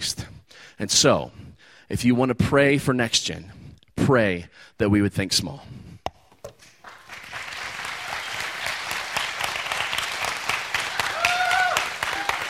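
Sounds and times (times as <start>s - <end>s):
speech: 0.8s - 5.9s
crowd applause: 6.8s - 12.4s
faint cheers or whistles: 11.0s - 12.4s.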